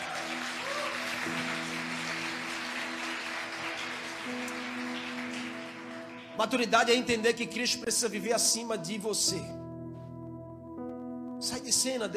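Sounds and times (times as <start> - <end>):
audience applause: 0.0 - 6.6
sustained low keyboard chords: 0.0 - 12.1
speech: 6.4 - 9.6, 11.8 - 12.1.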